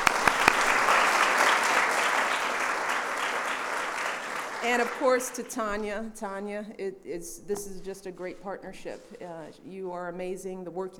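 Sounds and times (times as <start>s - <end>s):
audience applause: 0.0s - 5.4s
speech: 4.7s - 10.9s.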